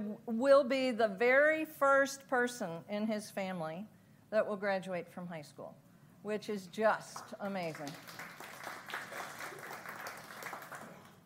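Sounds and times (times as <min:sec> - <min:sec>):
speech: 0:00.2 - 0:08.4
audience applause: 0:07.7 - 0:11.2.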